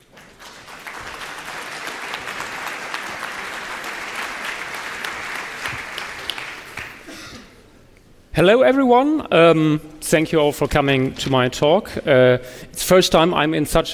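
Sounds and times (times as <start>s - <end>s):
audience applause: 0.0s - 7.1s
speech: 8.4s - 13.9s.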